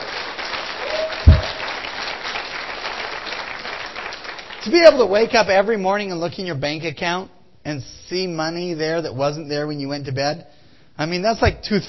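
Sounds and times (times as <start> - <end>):
soft applause from a small audience: 0.0 - 5.0
low thump: 1.2 - 1.6
speech: 4.6 - 11.8.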